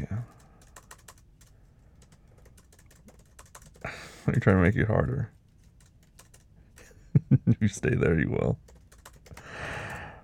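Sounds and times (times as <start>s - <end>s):
typing on a computer keyboard: 0.1s - 3.9s, 5.6s - 6.9s, 8.6s - 10.1s
speech: 3.9s - 5.4s, 7.6s - 8.6s.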